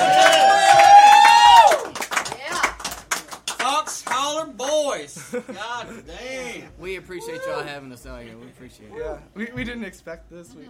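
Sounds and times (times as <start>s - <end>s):
crowd applause: 0.0s - 4.2s
speech: 5.4s - 10.6s.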